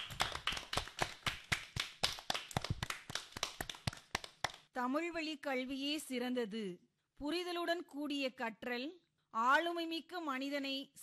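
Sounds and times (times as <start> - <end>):
small audience applauding a student's speech: 0.0 - 4.5
speech: 4.8 - 11.0.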